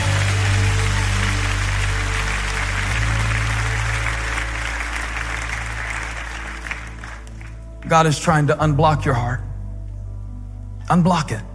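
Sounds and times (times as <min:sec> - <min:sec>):
audience clapping hands in praise: 0:00.0 - 0:08.4
speech: 0:07.9 - 0:09.5, 0:10.9 - 0:11.5.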